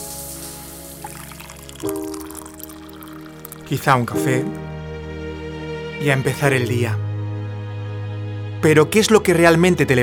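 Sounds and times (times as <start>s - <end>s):
shower running water: 0.0s - 3.7s
speech: 1.8s - 2.2s, 3.7s - 4.6s, 6.0s - 7.0s, 8.6s - 10.0s.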